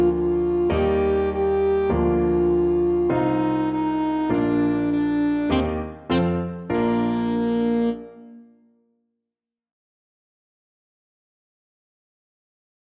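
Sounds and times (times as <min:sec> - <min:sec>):
saxophone playing a nursery rhyme: 0:00.0 - 0:08.4.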